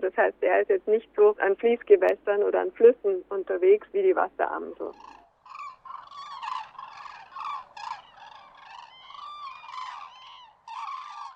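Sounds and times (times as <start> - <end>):
speech: 0.1 - 5.2
common crane calling: 4.5 - 11.3.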